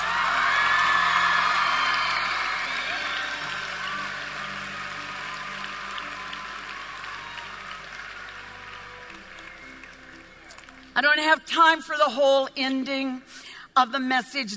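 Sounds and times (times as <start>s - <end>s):
scattered whoops: 0.0s - 10.6s
audience clapping and cheering: 0.0s - 11.2s
speech: 11.0s - 14.5s.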